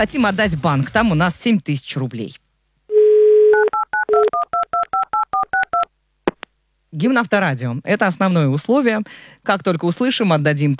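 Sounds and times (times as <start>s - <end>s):
speech: 0.0s - 2.4s, 7.0s - 10.7s
telephone dial tone: 2.9s - 5.4s
telephone touch-tone beeps: 3.5s - 5.9s.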